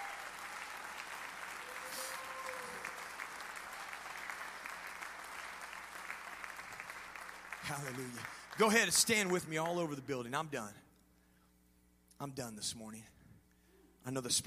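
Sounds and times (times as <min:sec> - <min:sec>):
audience applause: 0:00.0 - 0:10.0
speech: 0:07.7 - 0:10.8, 0:12.2 - 0:13.2, 0:14.0 - 0:14.4.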